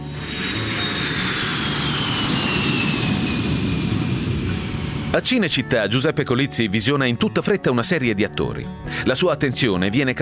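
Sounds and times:
airplane engine flying: 0:00.0 - 0:05.3
speech: 0:05.2 - 0:10.2.

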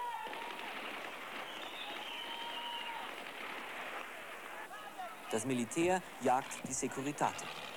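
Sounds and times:
gunshots: 0:00.2 - 0:04.6
speech: 0:05.3 - 0:07.7.

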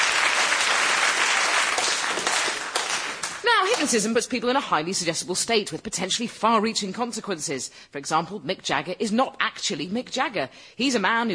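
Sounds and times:
audience applause: 0:00.0 - 0:03.8
speech: 0:03.6 - 0:11.3.

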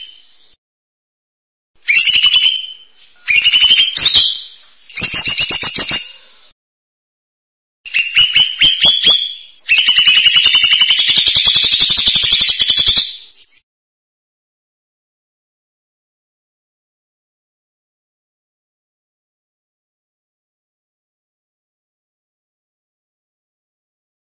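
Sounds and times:
bird song in buzzy trilled phrases: 0:01.8 - 0:06.5, 0:07.9 - 0:13.6.

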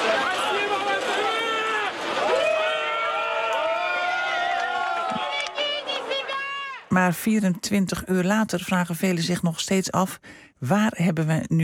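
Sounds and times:
large crowd of sympathisers in Russia cheering and shouting: 0:00.0 - 0:06.9
speech: 0:06.9 - 0:11.6.

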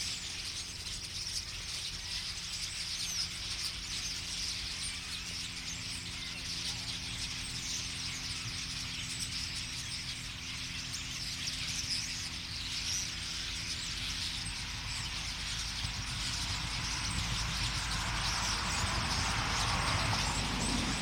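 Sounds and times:
common starling flock chattering: 0:00.0 - 0:20.9
low hum: 0:11.3 - 0:20.9.

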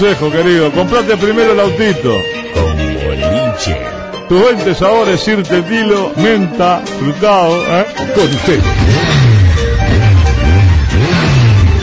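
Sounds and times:
speech: 0:00.0 - 0:02.8, 0:03.5 - 0:09.2
motorcycle engine revving: 0:08.0 - 0:11.8.

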